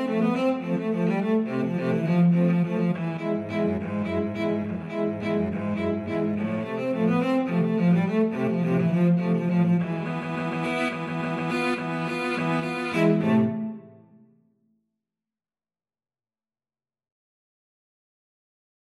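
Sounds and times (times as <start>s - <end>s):
cello quartet: 0.0s - 14.1s.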